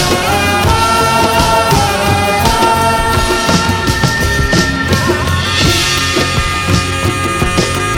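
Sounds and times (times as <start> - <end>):
music ringtone: 0.1 - 7.8.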